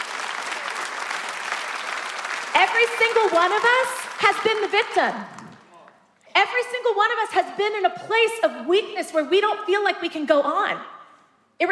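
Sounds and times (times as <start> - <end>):
crowd clapping: 0.0 - 6.0
speech: 2.6 - 5.4, 6.4 - 10.9, 11.6 - 11.7.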